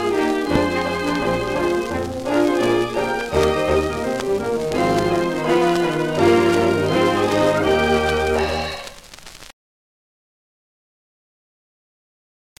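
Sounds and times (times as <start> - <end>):
orchestra: 0.0 - 8.7.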